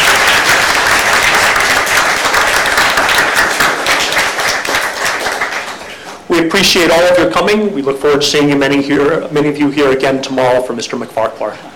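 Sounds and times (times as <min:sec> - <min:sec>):
audience applause: 0:00.0 - 0:06.3
speech: 0:06.6 - 0:11.7.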